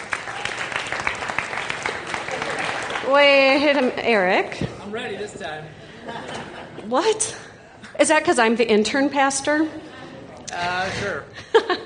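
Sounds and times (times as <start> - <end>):
audience applause: 0.0 - 4.1
laughter: 1.9 - 3.9, 5.4 - 8.0, 9.7 - 11.8
speech: 3.1 - 9.9, 10.5 - 11.8.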